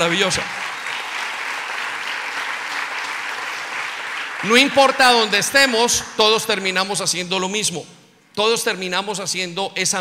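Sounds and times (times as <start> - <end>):
speech: 0.0 - 0.7, 4.4 - 9.9
audience applause: 0.0 - 6.0.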